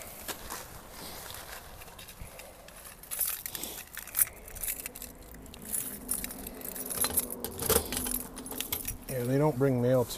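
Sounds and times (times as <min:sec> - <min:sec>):
keys jingling: 0:01.8 - 0:09.3
small metal mailbox door unlocked and opened: 0:04.0 - 0:09.0
speech: 0:09.2 - 0:10.1.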